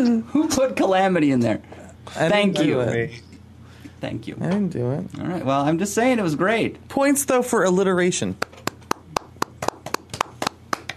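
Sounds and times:
speech: 0.0 - 3.3, 4.0 - 8.5
polite golf claps: 8.3 - 10.9.

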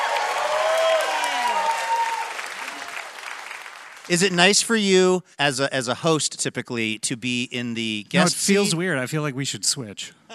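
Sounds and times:
audience applause for the band: 0.0 - 4.4
speech: 4.1 - 10.3.

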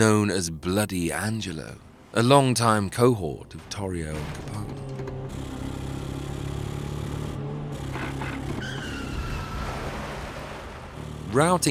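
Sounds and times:
speech: 0.0 - 4.8, 11.3 - 11.7
tires screeching in a car chase: 3.5 - 11.7.

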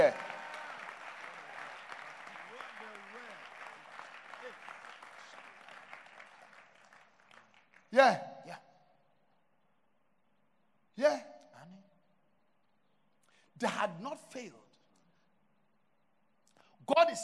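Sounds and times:
audience clapping hands: 0.0 - 8.2
speech: 8.0 - 8.3, 13.6 - 14.6, 16.9 - 17.2.

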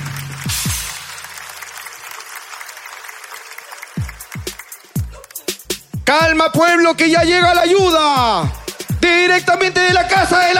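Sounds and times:
audience applause: 0.0 - 5.9, 8.4 - 9.5
speech: 6.1 - 10.5.

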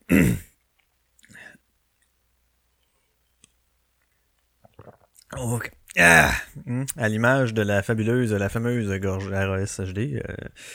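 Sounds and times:
small sip of a drink: 4.6 - 5.3
quiet swallow: 4.6 - 5.4
speech: 5.4 - 10.7.

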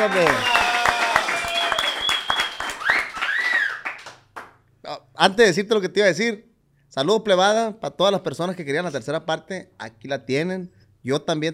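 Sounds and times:
speech: 0.0 - 0.6, 5.2 - 11.5
whooping cheers: 0.0 - 4.1
applause: 0.0 - 4.6
high whistles: 0.2 - 4.1.

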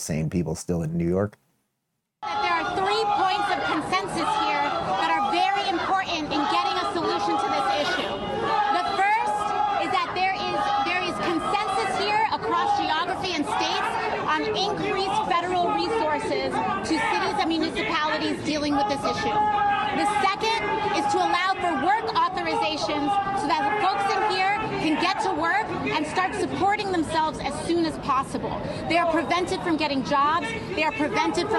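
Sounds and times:
speech: 0.0 - 1.4, 14.3 - 31.5
large crowd booing a speaker: 2.2 - 26.6.

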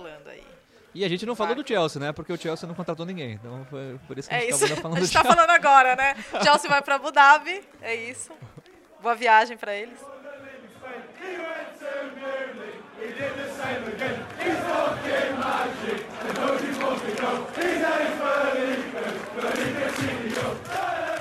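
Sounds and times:
speech: 1.0 - 10.2
laughter: 4.4 - 7.1, 8.1 - 8.8
football fans singing a club chant: 7.9 - 21.1.

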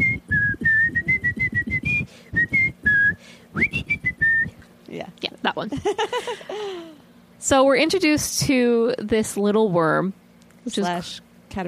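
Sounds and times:
person whistling a jaunty cartoon boat tune: 0.0 - 4.6
speech: 5.5 - 11.6
laughter: 5.7 - 7.0.

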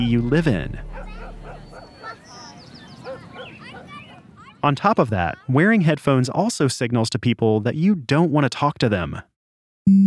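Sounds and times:
speech: 0.0 - 0.9, 4.6 - 9.3
dog barking in short yappy bursts: 0.9 - 4.3.

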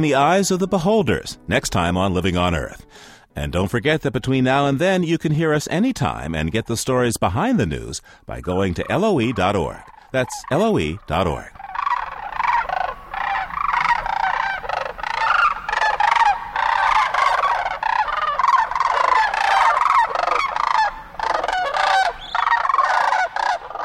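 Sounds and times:
speech: 0.0 - 11.6
flock of sandhill cranes calling while feeding: 8.5 - 23.8.

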